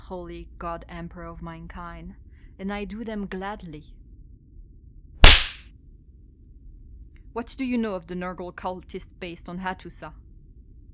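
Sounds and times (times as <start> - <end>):
speech: 0.1 - 4.0, 7.4 - 10.2
spanking slap: 5.2 - 5.6.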